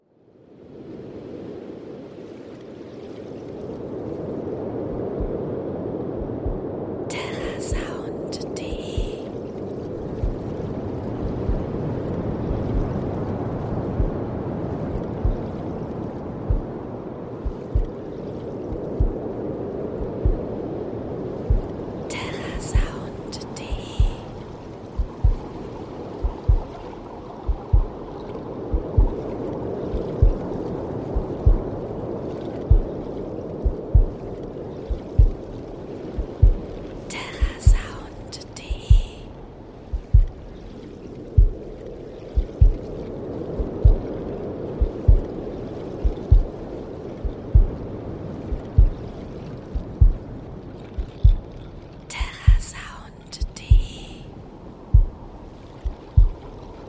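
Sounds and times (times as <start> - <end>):
waves: 0.0 - 56.8
heartbeat: 4.9 - 5.5, 6.2 - 6.8, 7.4 - 8.0, 10.2 - 10.6, 11.2 - 11.8, 12.5 - 13.0, 13.9 - 14.2, 14.9 - 15.6, 16.4 - 16.7, 17.4 - 18.0, 18.7 - 19.2, 20.0 - 20.6, 21.4 - 21.8, 22.5 - 23.1, 23.7 - 24.3, 25.0 - 25.5, 26.2 - 26.8, 27.4 - 28.0, 28.7 - 29.3, 29.9 - 31.8, 32.6 - 33.0, 33.6 - 34.2, 34.9 - 35.4, 36.1 - 36.7, 37.4 - 38.0, 38.7 - 39.2, 39.9 - 40.4, 41.3 - 41.7, 42.4 - 42.9, 43.5 - 44.1, 44.8 - 45.3, 46.0 - 46.6, 47.2 - 47.8, 48.5 - 49.0, 49.7 - 50.2, 50.9 - 51.5, 52.2 - 54.0, 54.9 - 55.2, 55.8 - 56.5.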